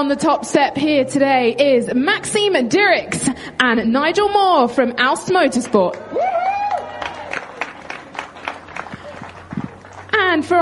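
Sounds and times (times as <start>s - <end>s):
speech: 0.0s - 6.3s, 10.3s - 10.5s
audience applause for podium finishers: 6.1s - 10.2s.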